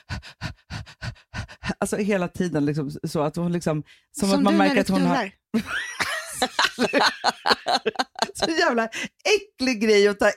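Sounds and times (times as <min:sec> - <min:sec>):
person imitating a whelping dog panting: 0:00.0 - 0:01.8
speech: 0:01.8 - 0:05.8, 0:06.4 - 0:10.3
laughter: 0:05.6 - 0:08.8.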